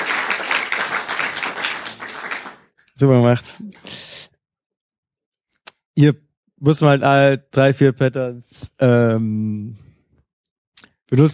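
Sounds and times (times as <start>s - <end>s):
group clapping: 0.0s - 3.1s
speech: 3.0s - 4.0s, 6.0s - 9.9s, 11.1s - 11.3s.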